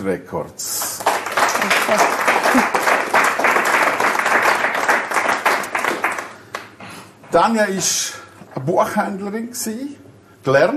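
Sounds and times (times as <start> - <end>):
speech: 0.0 - 0.8, 1.6 - 2.9, 7.3 - 10.7
audience applause: 0.8 - 6.7.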